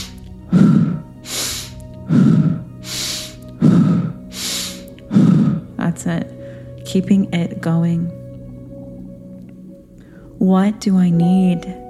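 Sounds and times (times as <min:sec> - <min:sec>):
inhaling through the nose in slow guided breathing: 0:00.0 - 0:05.7
exhaling through the mouth in slow guided breathing: 0:00.0 - 0:05.8
speech: 0:06.1 - 0:08.2, 0:10.4 - 0:11.8.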